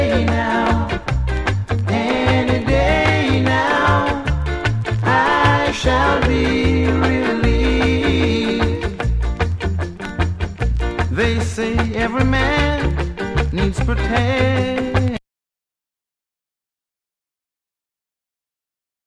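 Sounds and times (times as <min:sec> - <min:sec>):
reggae music: 0:00.0 - 0:15.2.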